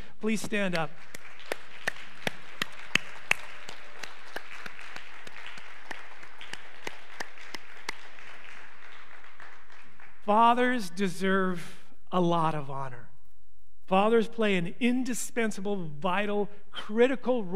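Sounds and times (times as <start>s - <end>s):
speech: 0.2s - 1.2s, 10.3s - 13.1s, 13.9s - 17.5s
audience applause: 0.6s - 10.2s.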